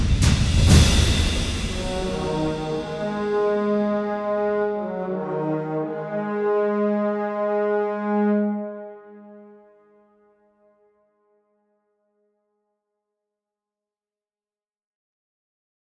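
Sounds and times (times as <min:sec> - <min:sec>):
instrumental music: 0:00.6 - 0:10.2.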